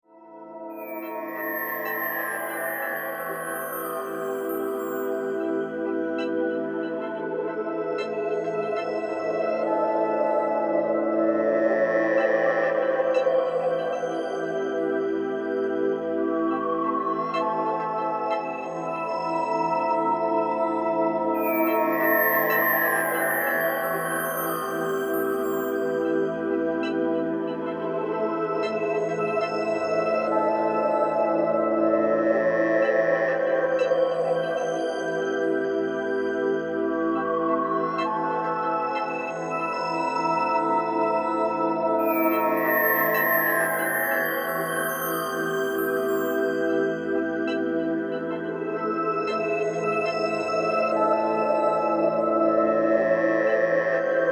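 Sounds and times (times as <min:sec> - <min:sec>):
relaxing spa music: 0:00.0 - 0:54.2.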